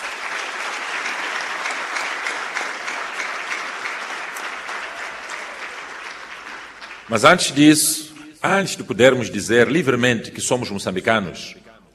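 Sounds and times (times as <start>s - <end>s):
applause: 0.0s - 8.3s
speech: 7.1s - 11.6s.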